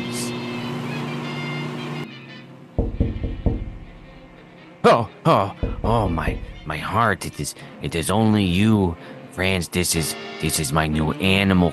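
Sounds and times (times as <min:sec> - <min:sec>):
microwave oven heating rolls: 0:00.0 - 0:02.2
low dull thumps: 0:02.8 - 0:04.5, 0:05.6 - 0:06.9
speech: 0:04.9 - 0:11.7.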